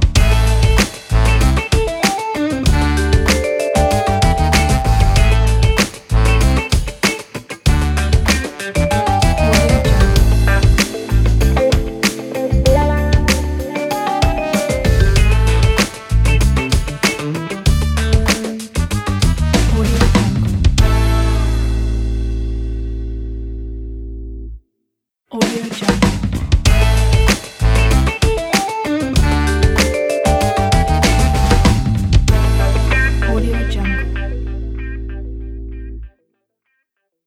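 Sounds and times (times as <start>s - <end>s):
funk ident: 0.2s - 23.5s, 26.7s - 36.1s.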